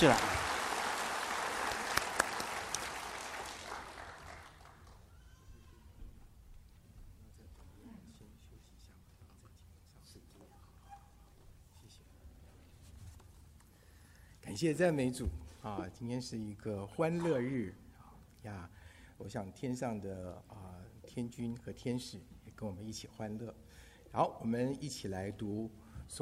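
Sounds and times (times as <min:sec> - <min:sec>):
speech: 0:00.0 - 0:00.3, 0:14.6 - 0:17.8, 0:18.4 - 0:26.2
audience applause: 0:00.0 - 0:05.2
soft rustling: 0:06.6 - 0:13.8.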